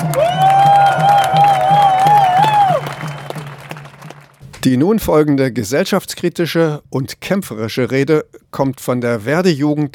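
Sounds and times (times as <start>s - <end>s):
crowd cheering: 0.0s - 4.4s
speech: 4.6s - 9.9s.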